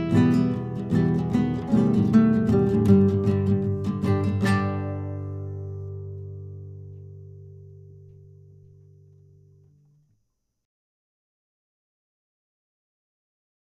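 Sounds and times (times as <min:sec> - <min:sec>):
fast guitar playing: 0:00.0 - 0:10.0.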